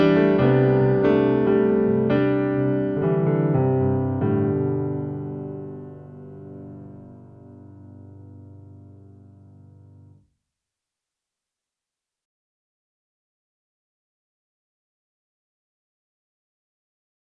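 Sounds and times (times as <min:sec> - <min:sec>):
grand piano without effects: 0:00.0 - 0:10.2.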